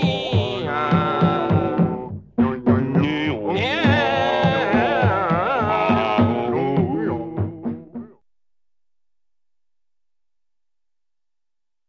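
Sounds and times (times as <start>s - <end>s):
funny male vocals: 0.0s - 8.0s
African drum beats: 0.0s - 8.2s.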